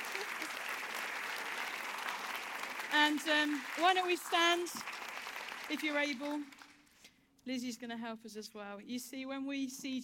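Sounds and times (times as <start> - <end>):
audience clapping: 0.0 - 7.0
speech: 2.9 - 4.9, 5.7 - 6.6, 7.4 - 10.0.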